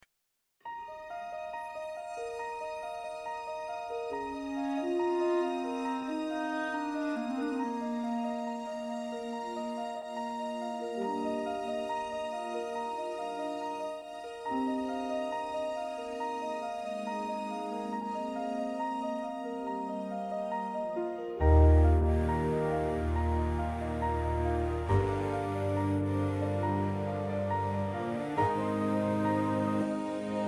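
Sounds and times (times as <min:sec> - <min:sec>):
instrumental music: 0:00.6 - 0:30.4.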